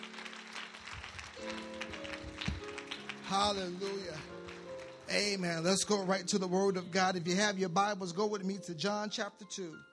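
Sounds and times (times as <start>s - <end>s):
audience clapping hands in praise: 0.0s - 6.6s
speech: 3.3s - 4.4s, 5.1s - 9.9s.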